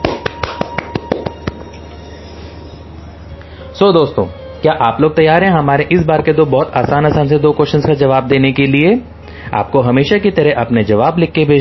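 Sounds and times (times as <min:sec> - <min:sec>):
one person clapping steadily: 0:00.0 - 0:01.7
faint steady hum: 0:00.0 - 0:11.5
speech: 0:03.8 - 0:11.5.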